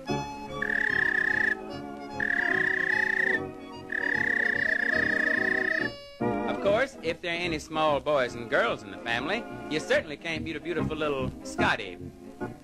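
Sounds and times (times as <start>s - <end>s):
police dog-calling whistle blowing high notes: 0.6s - 6.1s
speech: 7.0s - 12.2s.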